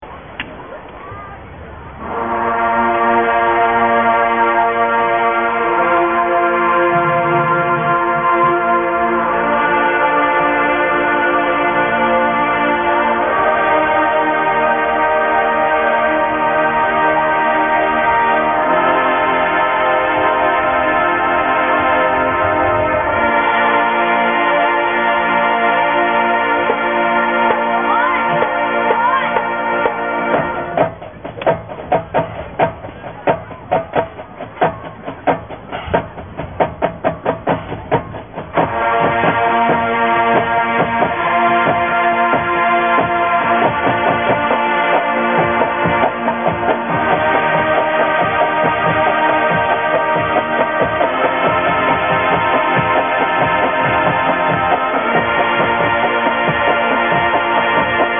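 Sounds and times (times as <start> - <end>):
band warming up: 0.0 - 58.1.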